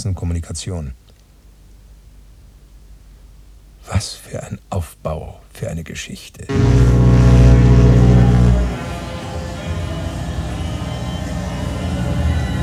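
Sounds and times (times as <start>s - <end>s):
speech: 0.0s - 1.0s, 5.8s - 7.1s
ship slowly approaching the dock: 6.5s - 12.6s.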